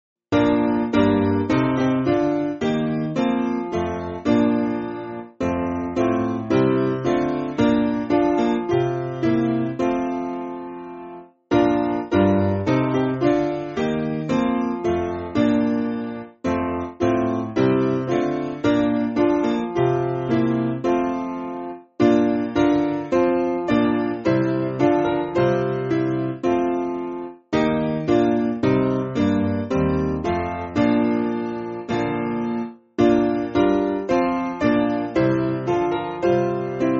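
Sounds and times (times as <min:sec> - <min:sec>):
piano backing music for churches: 0:00.3 - 0:36.9.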